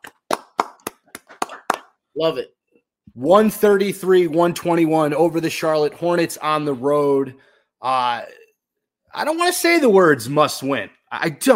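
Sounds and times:
applause: 0.0s - 1.9s
speech: 2.2s - 2.6s, 3.2s - 8.4s, 9.1s - 11.5s.

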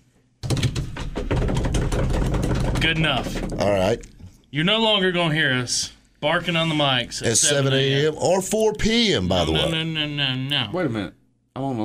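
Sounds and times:
improvised drum roll of rapid knocking taps on a hard surface: 0.4s - 3.9s
speech: 2.8s - 11.8s.

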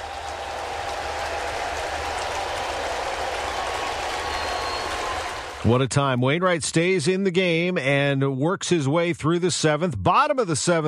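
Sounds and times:
ballpark crowd applauding: 0.0s - 5.8s
speech: 5.6s - 10.8s.

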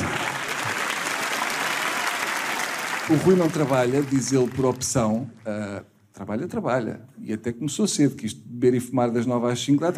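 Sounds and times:
audience applause: 0.0s - 5.3s
speech: 3.1s - 9.9s.

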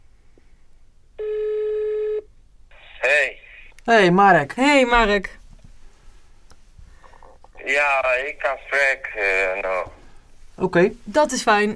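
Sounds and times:
telephone ringing tone: 1.2s - 2.3s
speech: 3.9s - 5.4s, 7.8s - 10.0s, 10.6s - 11.7s.

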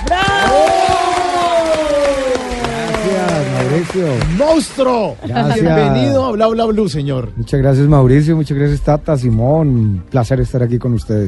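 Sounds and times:
audience clapping: 0.0s - 5.7s
speech: 3.9s - 11.2s.

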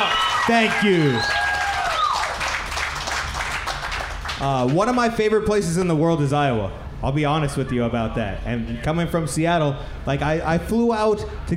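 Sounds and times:
audience clapping: 0.0s - 4.9s
speech: 0.5s - 1.4s, 4.4s - 11.5s.

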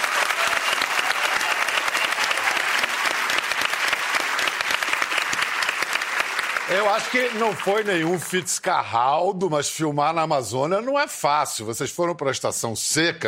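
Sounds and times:
studio audience applauding: 0.0s - 8.7s
speech: 6.7s - 13.2s.

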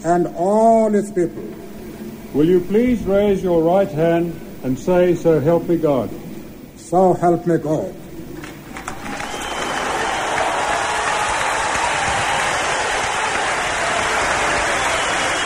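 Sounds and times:
speech: 0.0s - 1.7s, 2.3s - 6.2s, 6.9s - 8.0s
huge crowd applause in an amphitheater: 8.4s - 15.4s.

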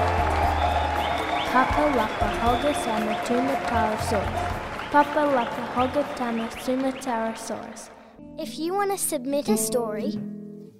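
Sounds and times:
large crowd cheering: 0.0s - 8.1s
speech: 1.5s - 10.3s.

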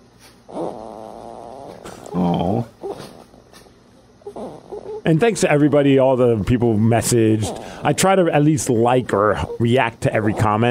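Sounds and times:
snoring: 0.5s - 3.3s, 4.2s - 5.0s, 7.2s - 8.0s
speech: 5.1s - 10.6s.

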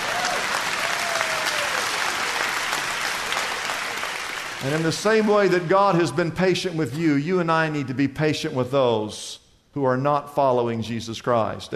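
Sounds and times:
louder audience clapping: 0.0s - 6.0s
speech: 4.6s - 11.7s.

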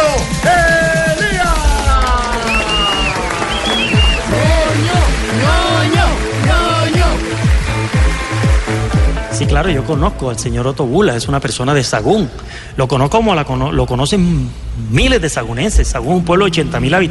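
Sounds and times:
scattered cheering voices: 0.0s - 8.3s
crowd applause: 0.4s - 9.4s
shrill whistles: 2.4s - 4.4s
speech: 9.5s - 17.0s.

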